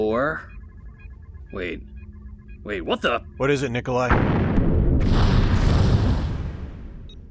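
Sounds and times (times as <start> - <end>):
speech: 0.0 - 0.6, 1.5 - 1.9, 2.6 - 4.4
spaceship exploding while engaging its warp drive, audio drama sound effect: 4.1 - 7.1.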